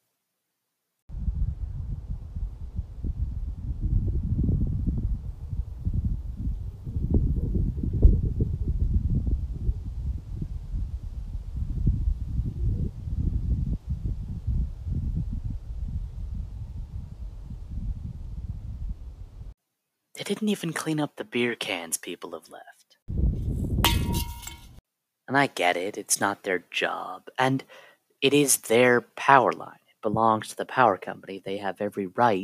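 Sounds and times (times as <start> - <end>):
wind: 1.1 - 19.6, 23.1 - 24.8
speech: 20.3 - 22.8, 25.3 - 32.4.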